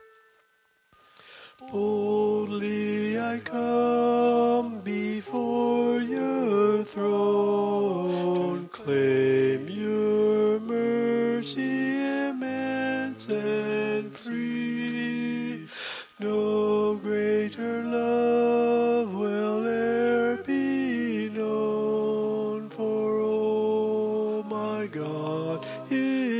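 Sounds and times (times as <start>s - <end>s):
vocal quartet lead singing learning track: 1.6s - 26.3s.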